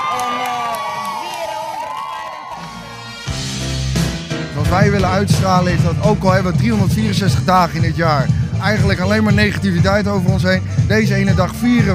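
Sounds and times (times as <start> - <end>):
crowd of protesting women shouting and cheering: 0.0 - 3.2
speech: 4.7 - 11.9.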